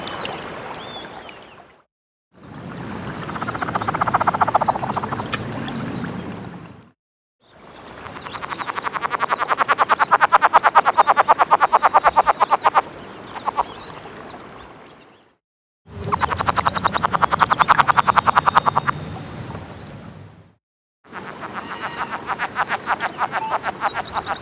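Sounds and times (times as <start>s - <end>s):
Cascades frog clucking: 3.3s - 5.3s, 8.2s - 12.8s, 13.4s - 13.7s, 15.9s - 19.0s, 21.1s - 24.4s.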